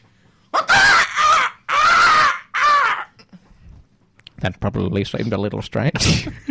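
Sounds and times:
man imitating rooster crowing: 0:00.6 - 0:03.2
speech: 0:04.4 - 0:06.4.

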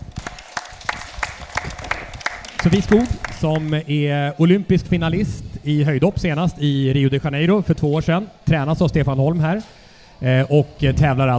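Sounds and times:
audience applause: 0:00.0 - 0:03.8
speech: 0:02.6 - 0:11.3.

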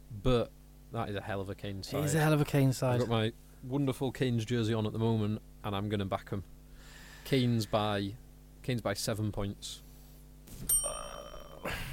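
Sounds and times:
speech: 0:00.2 - 0:06.6, 0:07.2 - 0:09.8, 0:10.6 - 0:11.8
bell strike: 0:10.7 - 0:11.7.

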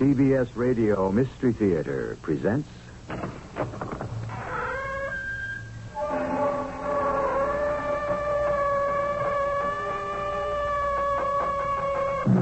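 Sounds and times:
speech: 0:00.0 - 0:03.2
creaking door opening: 0:03.1 - 0:12.3.

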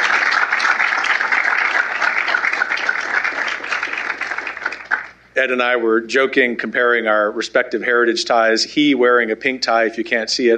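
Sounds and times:
audience applause: 0:00.0 - 0:05.2
speech: 0:05.4 - 0:10.5.

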